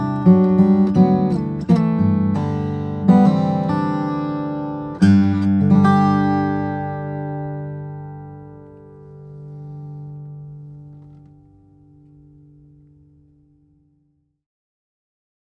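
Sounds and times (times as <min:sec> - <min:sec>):
steel-string flattop guitar of cocobolo and cedar: 0:00.0 - 0:13.8.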